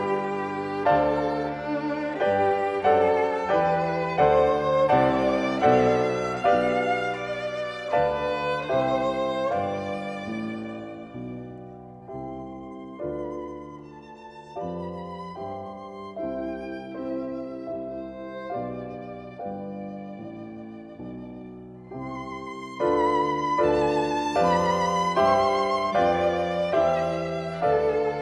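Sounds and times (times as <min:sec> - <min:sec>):
chorale for violin and piano: 0:00.0 - 0:28.2.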